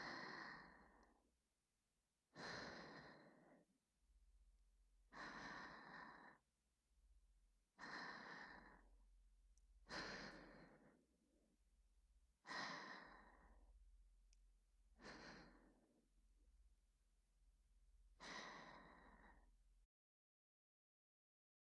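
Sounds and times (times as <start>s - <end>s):
whispered breathing: 0.0s - 1.2s, 2.3s - 3.7s, 5.1s - 6.5s, 7.8s - 9.1s, 9.8s - 11.1s, 12.4s - 13.8s, 14.9s - 16.0s, 18.2s - 19.6s.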